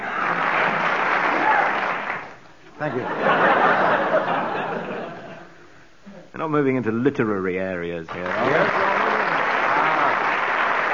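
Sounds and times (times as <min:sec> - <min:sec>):
audience applause encouraging a contestant: 0:00.0 - 0:02.4, 0:08.1 - 0:10.9
speech: 0:02.8 - 0:03.4, 0:06.4 - 0:09.0
laughter: 0:02.8 - 0:05.5.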